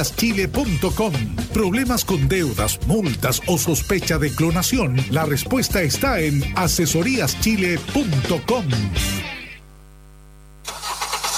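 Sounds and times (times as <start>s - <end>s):
speech: 0.0s - 9.4s
car engine starting: 10.7s - 11.3s.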